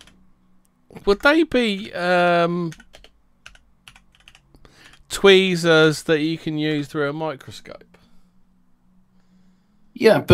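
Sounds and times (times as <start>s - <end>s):
speech: 1.0s - 2.8s, 5.1s - 7.9s, 10.0s - 10.3s
typing on a computer keyboard to search online: 2.7s - 5.1s.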